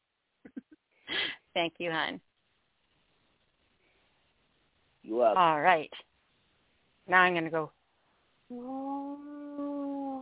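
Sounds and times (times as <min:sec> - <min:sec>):
speech: 0:01.6 - 0:02.3, 0:05.1 - 0:06.1, 0:07.1 - 0:07.8, 0:08.5 - 0:09.3
voice imitating a foghorn: 0:08.5 - 0:10.2.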